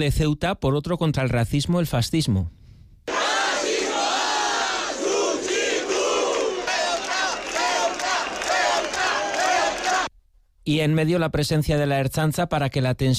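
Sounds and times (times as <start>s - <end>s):
speech: 0.0s - 2.6s, 10.6s - 13.1s
crowd shouting at street protest: 3.1s - 10.1s.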